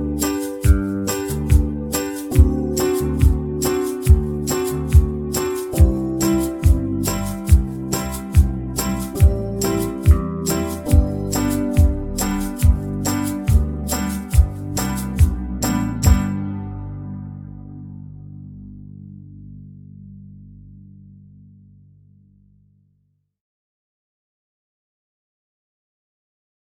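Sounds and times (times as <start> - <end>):
banjo backing track in the key of G: 0.0 - 16.5.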